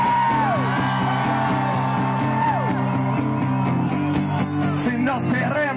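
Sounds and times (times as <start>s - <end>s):
crowd cheering and whooping: 0.0s - 5.6s.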